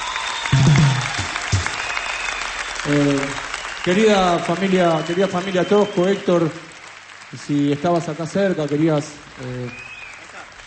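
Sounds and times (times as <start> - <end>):
audience applause: 0.0 - 10.6
speech: 2.9 - 6.7, 7.3 - 9.9.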